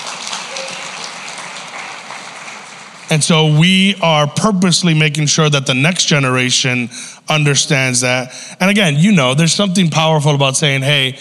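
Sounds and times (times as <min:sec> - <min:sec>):
audience applause: 0:00.0 - 0:03.6
speech: 0:03.1 - 0:11.2.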